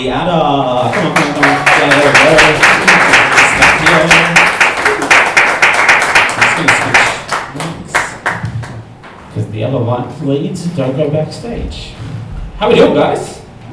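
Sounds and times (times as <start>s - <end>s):
speech: 0.0s - 4.4s, 9.6s - 13.4s
audience applause welcoming two podcast hosts onto a stage: 0.8s - 8.8s.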